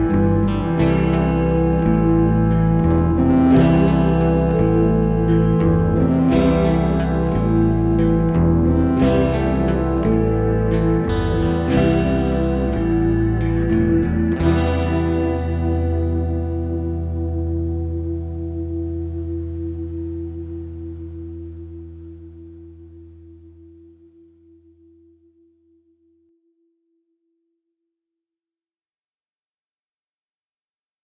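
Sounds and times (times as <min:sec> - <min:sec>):
march music: 0:00.0 - 0:21.1.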